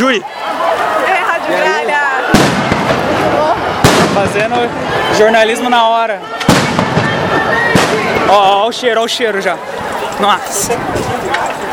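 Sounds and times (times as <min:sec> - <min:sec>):
loud continuous talking and crowd noise: 0:00.0 - 0:11.7
speech: 0:00.1 - 0:00.4, 0:01.5 - 0:01.8, 0:04.2 - 0:11.7
bombs and gunshots fired to disperse a protest crowd: 0:02.3 - 0:04.5, 0:06.4 - 0:08.2.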